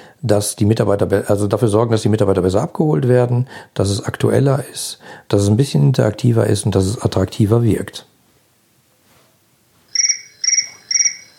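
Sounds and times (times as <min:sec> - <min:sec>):
speech: 0:00.2 - 0:08.1
telephone ringing: 0:09.9 - 0:11.3.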